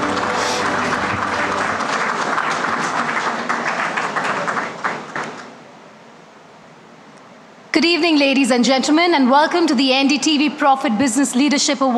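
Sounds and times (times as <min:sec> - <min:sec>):
audience applause: 0:00.0 - 0:05.6
speech: 0:07.8 - 0:11.9.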